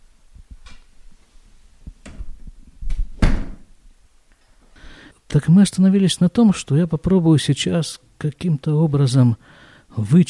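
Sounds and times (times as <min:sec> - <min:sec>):
door being closed: 0:02.0 - 0:03.8
speech: 0:05.4 - 0:10.2.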